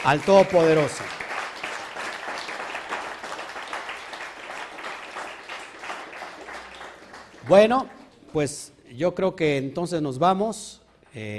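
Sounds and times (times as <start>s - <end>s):
speech: 0.0s - 1.2s, 7.5s - 11.3s
crowd applause: 0.0s - 8.3s.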